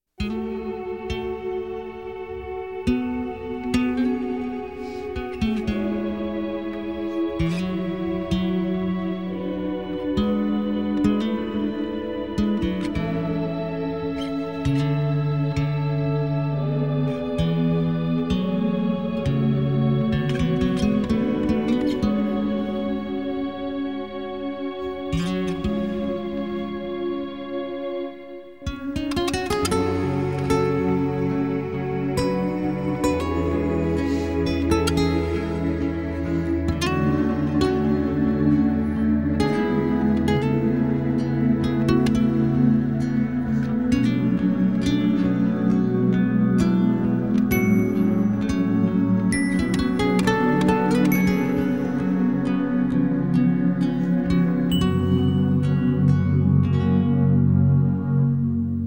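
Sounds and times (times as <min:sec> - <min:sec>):
sad guitar piece: 0:00.2 - 0:58.8.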